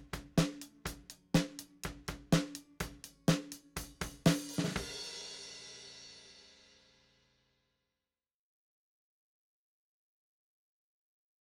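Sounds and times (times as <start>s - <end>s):
snare drum: 0.0s - 5.9s.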